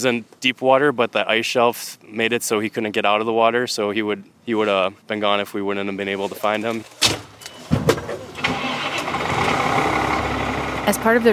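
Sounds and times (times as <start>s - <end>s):
speech: 0.0s - 7.2s, 10.9s - 11.3s
car engine cranking, starting and idling: 7.0s - 11.3s.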